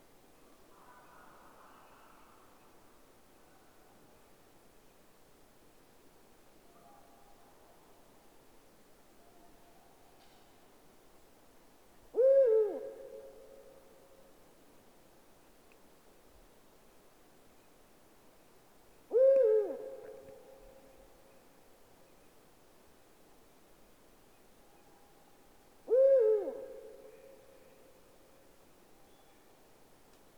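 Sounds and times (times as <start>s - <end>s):
Eurasian eagle-owl deep hoots: 12.2s - 13.2s, 19.1s - 20.4s, 25.9s - 27.8s.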